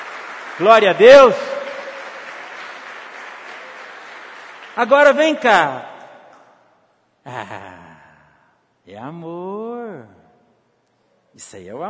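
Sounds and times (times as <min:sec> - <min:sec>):
congregation clapping for Jesus at a Christian sermon: 0:00.0 - 0:05.7
speech: 0:00.6 - 0:01.5, 0:04.8 - 0:05.9, 0:07.2 - 0:07.8, 0:08.9 - 0:10.2, 0:11.4 - 0:11.8.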